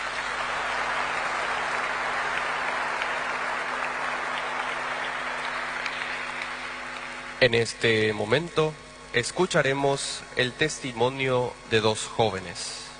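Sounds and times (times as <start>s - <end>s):
audience applause: 0.0s - 7.4s
speech: 7.4s - 12.8s.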